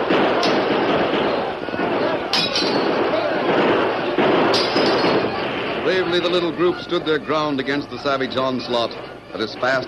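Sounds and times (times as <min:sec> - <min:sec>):
gunfire sound effects in a radio drama frontier battle: 0:00.0 - 0:07.7, 0:08.3 - 0:09.8
shouting and commotion: 0:00.0 - 0:09.8
speech: 0:05.9 - 0:09.8.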